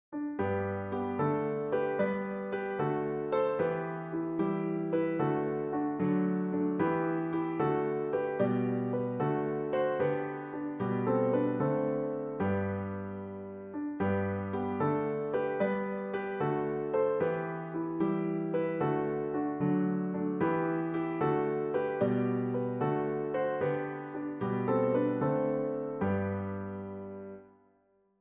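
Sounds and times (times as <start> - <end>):
carol tune played on a keyboard: 0.2 - 27.5.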